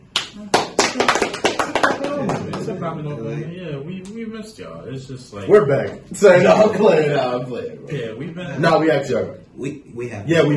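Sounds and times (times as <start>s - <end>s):
hands clapping: 0.0s - 2.7s
speech: 2.7s - 10.5s.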